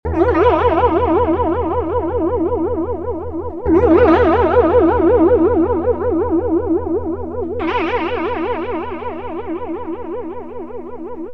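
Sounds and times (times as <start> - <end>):
clean electric guitar through Boss BF1: 0.0 - 11.3.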